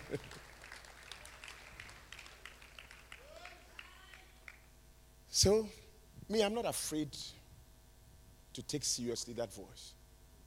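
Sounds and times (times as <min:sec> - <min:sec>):
audience clapping: 0:00.0 - 0:04.7
speech: 0:00.1 - 0:00.4, 0:05.4 - 0:07.4, 0:08.6 - 0:10.0.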